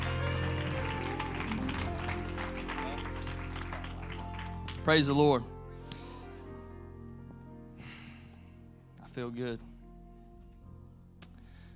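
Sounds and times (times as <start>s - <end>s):
audience clapping hands: 0.0s - 5.4s
speech: 4.8s - 5.6s, 9.2s - 9.7s.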